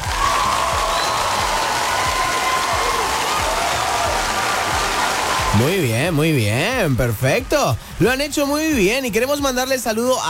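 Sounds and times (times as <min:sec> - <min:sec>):
loud applause: 0:00.0 - 0:06.5
speech: 0:05.6 - 0:10.2.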